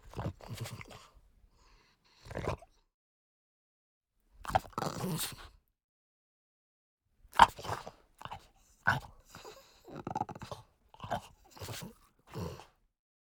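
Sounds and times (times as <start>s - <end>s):
French Bulldog giving rough snorting grunts: 2.2s - 2.7s, 4.5s - 5.5s, 7.4s - 12.8s.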